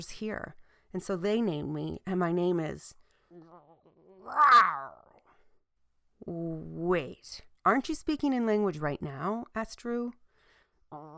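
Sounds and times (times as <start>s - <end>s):
speech: 0.0s - 5.1s, 6.2s - 10.2s, 10.9s - 11.1s
person imitating an animal growl: 3.3s - 5.2s, 10.9s - 11.1s.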